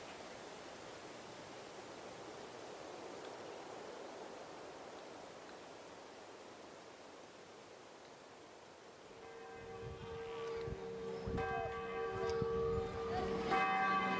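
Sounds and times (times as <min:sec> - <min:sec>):
Haitian soundscape: 0:09.1 - 0:14.1.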